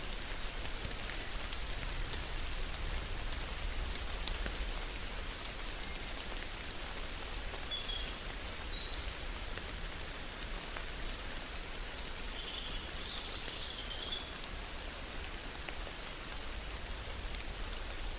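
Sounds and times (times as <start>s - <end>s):
rainstorm in a chestnut grove: 0.0s - 18.1s.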